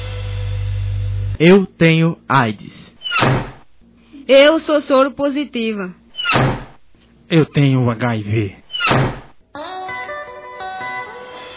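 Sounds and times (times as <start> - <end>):
sustained tonal drone with layered harmonic tones: 0.0 - 1.4
speech: 1.4 - 3.4, 4.3 - 6.5, 7.3 - 9.2
heavy door slamming: 3.0 - 3.7, 6.2 - 6.8, 8.7 - 9.4.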